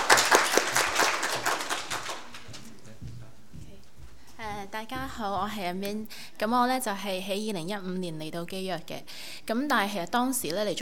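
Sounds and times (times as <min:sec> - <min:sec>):
audience applause at a church worship service: 0:00.0 - 0:03.0
speech: 0:04.8 - 0:10.8.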